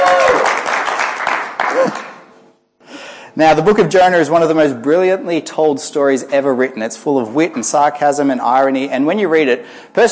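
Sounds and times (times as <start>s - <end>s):
brief whoops: 0.0s - 0.6s, 1.6s - 2.2s
audience applause: 0.0s - 2.2s
speech: 3.4s - 10.1s.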